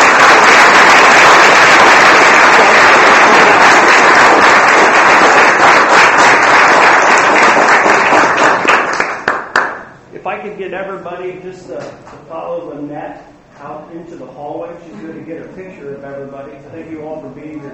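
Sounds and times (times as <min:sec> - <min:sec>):
audience applause: 0:00.0 - 0:09.9
speech: 0:11.4 - 0:17.7.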